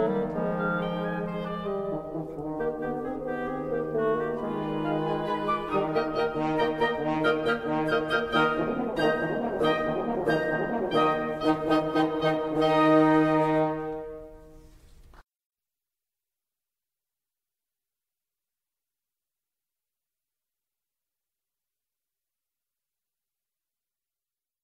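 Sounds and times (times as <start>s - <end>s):
wind quintet: 0.0s - 14.8s.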